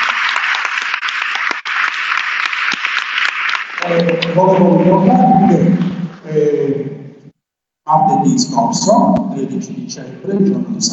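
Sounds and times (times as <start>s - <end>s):
crowd applauding: 0.0s - 5.2s
speech: 3.8s - 7.0s, 7.9s - 10.9s.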